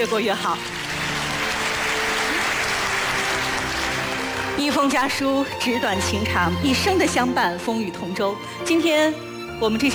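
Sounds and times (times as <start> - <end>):
speech: 0.0 - 0.8, 4.6 - 9.9
audience applause: 0.3 - 5.2.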